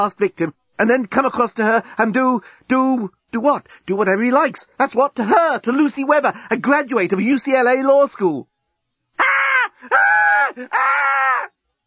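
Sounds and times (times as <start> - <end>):
speech: 0.0 - 8.5, 9.2 - 11.2
woman screaming: 9.2 - 11.5.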